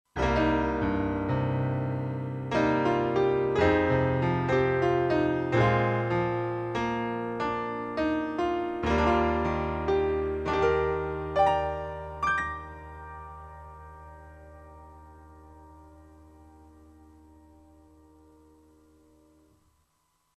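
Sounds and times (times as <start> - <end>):
Bösendorfer 290 piano: 0.1 - 20.3.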